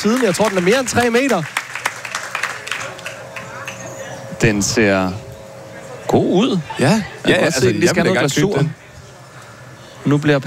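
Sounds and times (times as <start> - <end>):
speech: 0.0 - 1.6, 4.4 - 5.2, 6.1 - 8.8, 10.0 - 10.4
scattered clapping at a bakery: 0.0 - 4.2.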